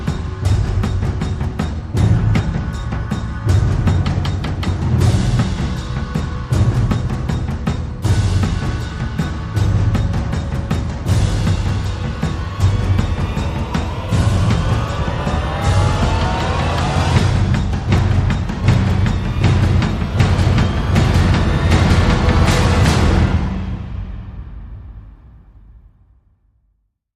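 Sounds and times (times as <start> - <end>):
percussion: 0.0 - 26.0.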